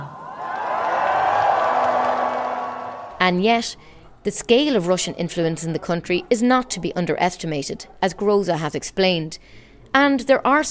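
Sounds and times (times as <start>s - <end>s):
large crowd cheering at a pro-European rally in Moldova: 0.0s - 3.3s
speech: 3.2s - 10.6s.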